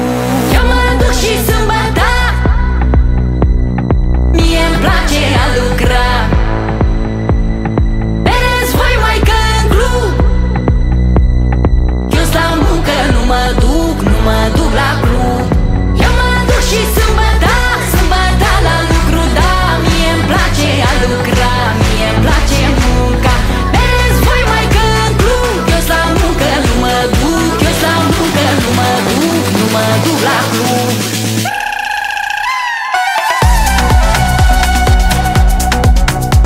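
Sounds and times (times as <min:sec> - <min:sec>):
slap house music: 0:00.1 - 0:36.4.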